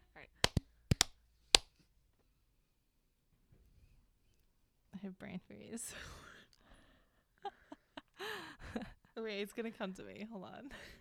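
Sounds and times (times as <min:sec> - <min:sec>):
hand clap: 0:00.4 - 0:01.1
speech: 0:05.0 - 0:06.2, 0:08.7 - 0:11.0.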